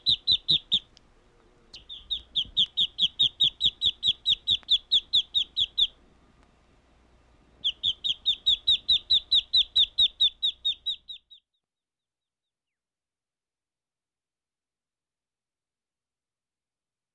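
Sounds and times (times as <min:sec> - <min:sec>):
bird chirping: 0:00.0 - 0:06.0, 0:07.5 - 0:11.6.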